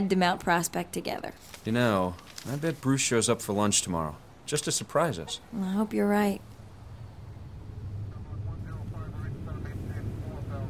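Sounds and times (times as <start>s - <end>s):
speech: 0.0s - 6.5s
airplane cabin rumble approaching Dulles for landing: 6.4s - 10.6s.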